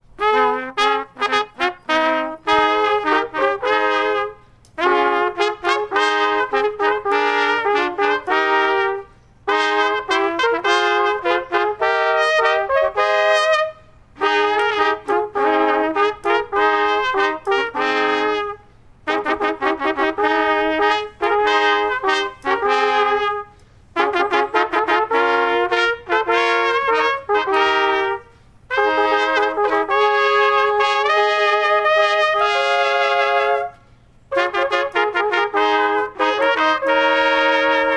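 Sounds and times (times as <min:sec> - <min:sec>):
morning trumpets: 0:00.1 - 0:37.9.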